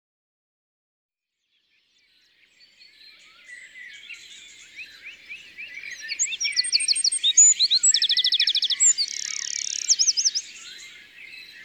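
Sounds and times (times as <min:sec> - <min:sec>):
Eurasian wren singing: 0:03.7 - 0:11.6.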